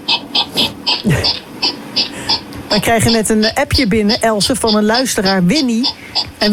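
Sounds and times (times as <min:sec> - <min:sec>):
hedgehog grunting and snuffling: 0:00.1 - 0:06.5
speech: 0:02.7 - 0:06.5.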